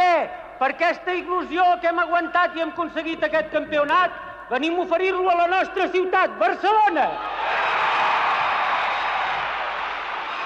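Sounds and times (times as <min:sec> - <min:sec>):
speech: 0:00.6 - 0:07.4
crowd ovation in the Parliament: 0:07.2 - 0:10.4.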